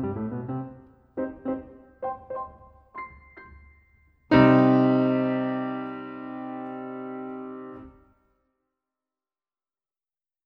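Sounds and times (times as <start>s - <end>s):
piano ballade: 0.0s - 8.1s.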